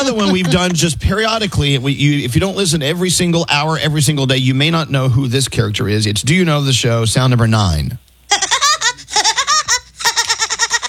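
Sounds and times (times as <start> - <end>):
speech: 0.0 - 8.4
voice imitating cartoon woodpecker laugh: 8.3 - 10.8.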